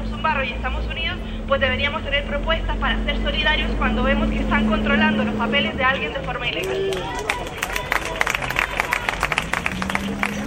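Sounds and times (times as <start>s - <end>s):
speech: 0.3s - 7.5s
murmuring voices: 3.5s - 10.4s
assembly crowd clapping: 6.2s - 10.4s.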